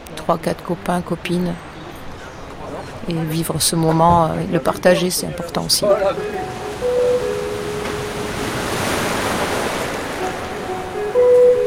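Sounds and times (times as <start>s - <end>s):
waves rolling onto a deserted surf beach: 0.0s - 11.6s
speech: 0.3s - 1.7s, 3.0s - 6.6s.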